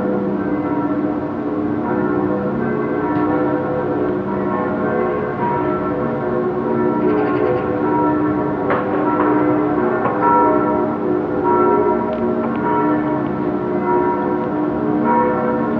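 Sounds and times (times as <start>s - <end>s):
distant bells in Berlin: 0.0s - 15.7s.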